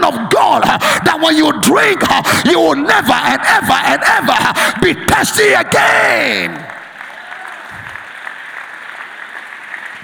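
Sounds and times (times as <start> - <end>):
speech: 0.1 - 6.8
audience clapping: 5.7 - 10.0.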